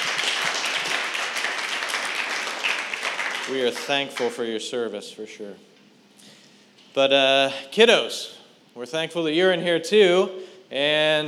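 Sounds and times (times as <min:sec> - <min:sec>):
audience clapping for veterans: 0:00.0 - 0:04.4
speech: 0:03.5 - 0:05.7, 0:07.0 - 0:11.2.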